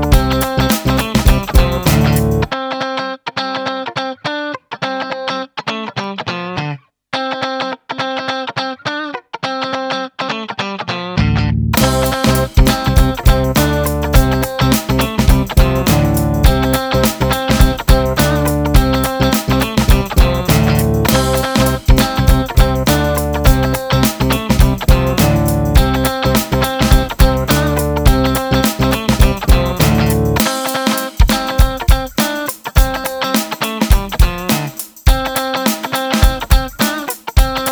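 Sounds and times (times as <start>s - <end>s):
funky guitar: 0.0s - 37.7s.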